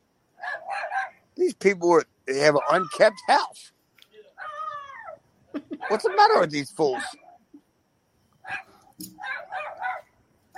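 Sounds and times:
dog barking: 0.4 - 1.2, 2.6 - 3.1, 5.8 - 7.4, 8.4 - 10.5
speech: 1.5 - 3.8, 5.9 - 7.2.

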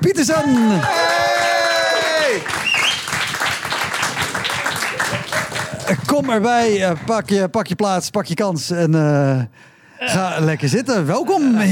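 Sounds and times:
speech: 0.0 - 1.4, 6.1 - 11.7
warm audience applause: 0.4 - 7.2.

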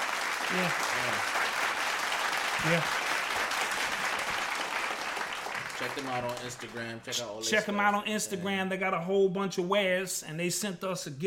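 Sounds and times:
people clapping: 0.0 - 7.2
speech: 0.5 - 1.7, 2.6 - 3.0, 5.8 - 11.2.

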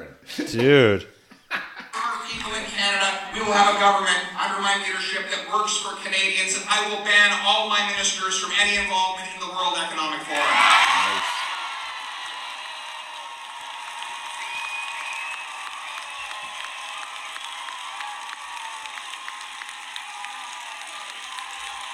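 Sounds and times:
speech: 0.0 - 1.1, 2.8 - 11.4
crowd applause in a standing ovation: 2.0 - 4.6, 10.1 - 21.9.

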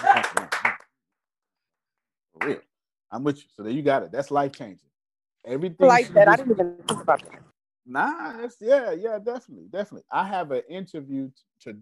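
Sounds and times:
hand clapping: 0.0 - 0.9, 2.4 - 2.6
speech: 2.4 - 11.8.

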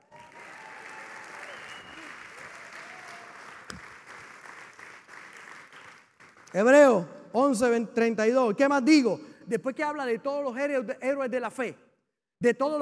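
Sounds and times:
audience applause: 0.0 - 6.5
speech: 6.5 - 11.8, 12.4 - 12.8.

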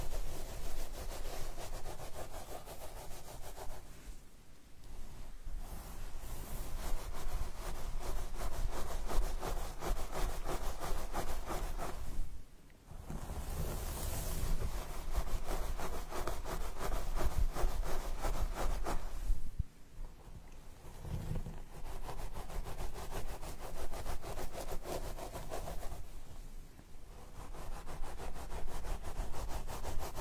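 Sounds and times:
comb dragging through hair and over the scalp: 0.0 - 3.9, 5.6 - 12.2, 13.3 - 19.3, 21.5 - 26.1, 27.1 - 30.2.

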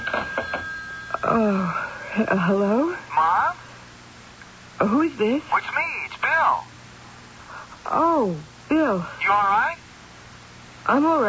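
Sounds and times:
telephone ringing: 0.0 - 1.8
speech: 1.3 - 3.4, 4.8 - 5.7, 7.9 - 9.8, 10.9 - 11.2.

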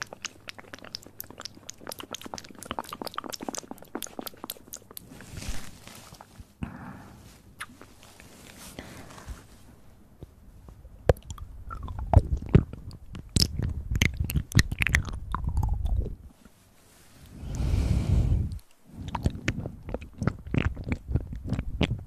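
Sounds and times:
wet mouth clicks and smacks: 0.0 - 5.1, 7.6 - 7.9, 11.1 - 16.2, 18.5 - 22.0
crunchy chewing: 0.0 - 5.4, 11.2 - 16.1, 18.6 - 22.0
breathy swells: 17.3 - 19.0.

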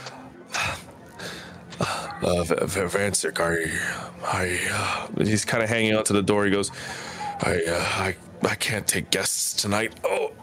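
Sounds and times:
person imitating a sickly worn-out character panting: 0.5 - 2.2, 6.7 - 7.4
speech: 1.8 - 10.4.

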